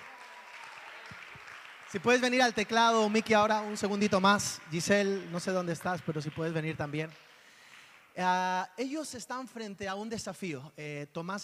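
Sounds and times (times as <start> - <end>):
audience applause: 0.0 - 8.1
speech: 1.9 - 7.3, 8.2 - 11.4.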